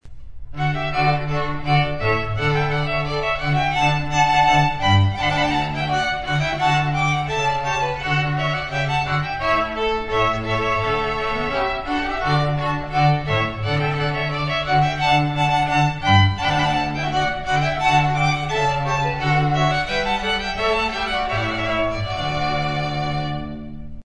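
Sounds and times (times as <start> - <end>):
strings playing a rondeau: 0.2 - 24.0.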